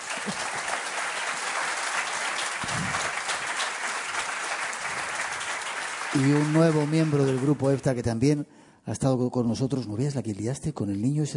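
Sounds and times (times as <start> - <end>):
audience applause: 0.0 - 8.0
speech: 6.2 - 11.3.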